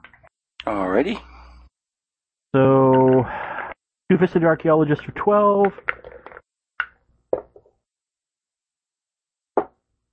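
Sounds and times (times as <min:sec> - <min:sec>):
speech: 0:00.7 - 0:01.3, 0:02.5 - 0:03.4, 0:04.1 - 0:05.9
dice being rolled: 0:05.7 - 0:06.4.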